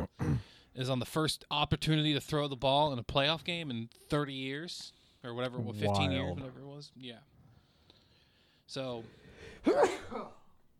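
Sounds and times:
person sneezing: 0:00.0 - 0:00.5, 0:09.6 - 0:10.6
speech: 0:00.8 - 0:07.3, 0:08.7 - 0:10.4.

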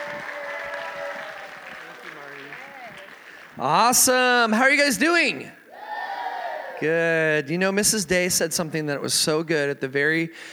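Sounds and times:
elementary school audience applauding to welcome a speaker: 0:00.0 - 0:04.3
speech: 0:03.6 - 0:05.6, 0:06.8 - 0:10.5.

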